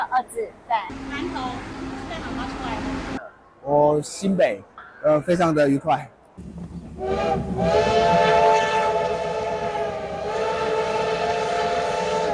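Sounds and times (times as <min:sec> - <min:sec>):
train passing: 0:00.0 - 0:03.2, 0:05.1 - 0:12.3
speech: 0:00.0 - 0:08.6
steam locomotive whistle: 0:07.0 - 0:12.3.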